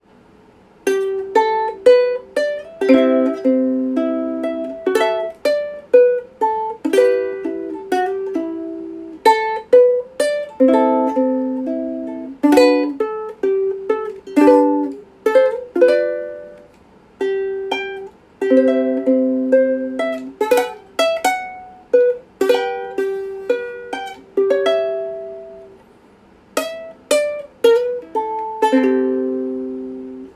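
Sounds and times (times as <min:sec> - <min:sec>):
ukulele solo: 0:00.7 - 0:30.3.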